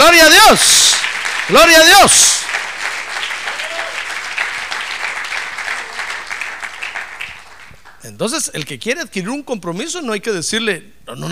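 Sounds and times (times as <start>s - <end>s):
audience applause: 0.0s - 8.0s
speech: 0.1s - 2.6s, 8.2s - 11.3s.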